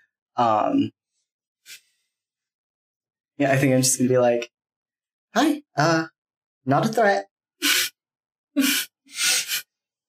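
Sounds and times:
speech: 0.4s - 1.0s, 3.4s - 4.6s, 5.3s - 7.8s, 8.6s - 9.3s
voice imitating a creature sniffling: 7.6s - 7.9s, 8.6s - 9.7s.

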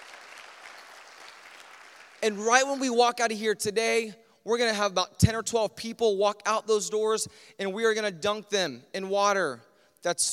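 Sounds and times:
audience applause: 0.0s - 2.3s
speech: 2.2s - 10.3s.

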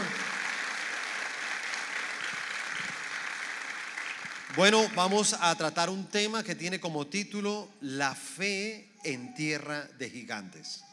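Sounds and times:
audience applause: 0.0s - 5.2s
speech: 4.6s - 10.9s.

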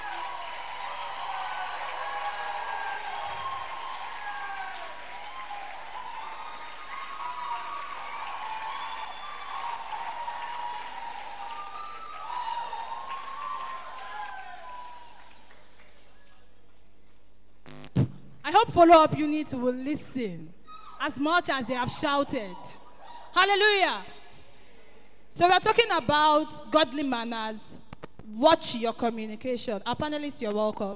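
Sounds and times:
audience clapping: 0.0s - 16.4s
speech: 18.0s - 22.8s, 23.4s - 24.1s, 25.4s - 27.8s, 28.4s - 30.9s.

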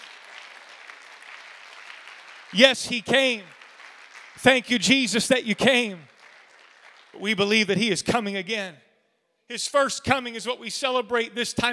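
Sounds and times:
audience clapping hands: 0.0s - 8.2s
speech: 2.5s - 3.6s, 4.4s - 6.1s, 7.1s - 8.9s, 9.5s - 11.7s.

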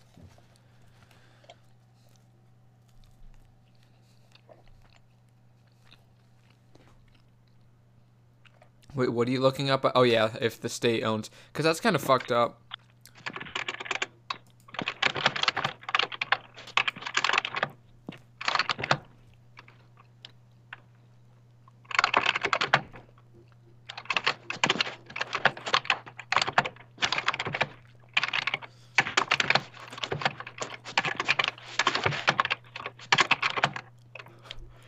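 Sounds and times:
speech: 9.0s - 12.6s
person typing an essay on a computer keyboard: 13.1s - 19.8s, 21.8s - 34.7s.

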